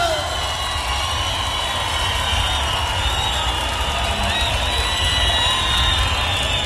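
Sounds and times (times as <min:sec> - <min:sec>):
crowd applause and cheering: 0:00.0 - 0:06.6.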